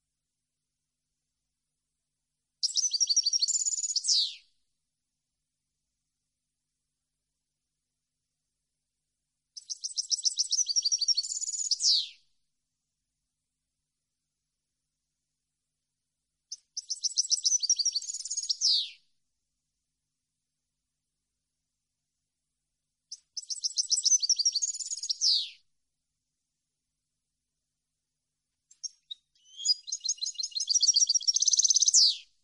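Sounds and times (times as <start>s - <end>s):
European goldfinch twittering song: 2.6s - 4.4s, 9.6s - 12.2s, 16.5s - 19.0s, 23.1s - 25.6s, 28.7s - 32.2s.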